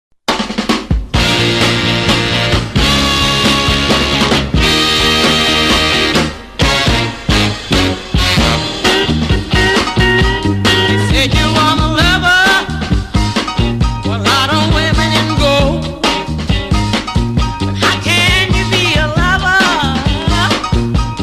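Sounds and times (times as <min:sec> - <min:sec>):
rhythm and blues music: 0:00.3 - 0:21.2.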